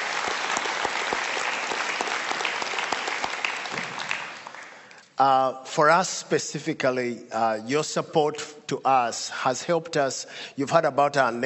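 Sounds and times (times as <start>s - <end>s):
audience applause: 0.0s - 4.9s
speech: 5.2s - 11.4s.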